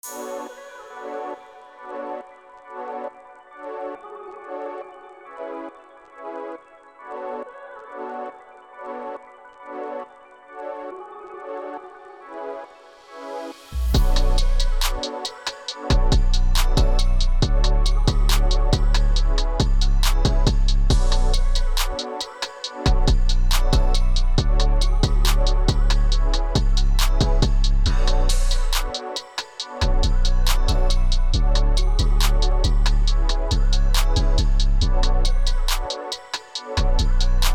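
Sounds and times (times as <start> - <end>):
chill beat: 13.7 - 37.5.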